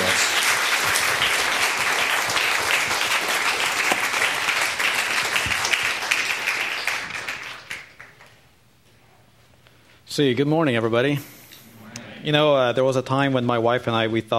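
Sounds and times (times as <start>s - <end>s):
church congregation applause welcoming a guest speaker: 0.0s - 8.5s
speech: 10.2s - 11.4s, 12.2s - 14.3s.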